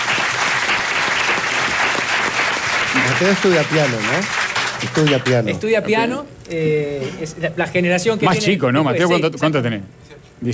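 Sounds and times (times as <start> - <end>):
audience applause: 0.0 - 5.6
speech: 3.2 - 10.5.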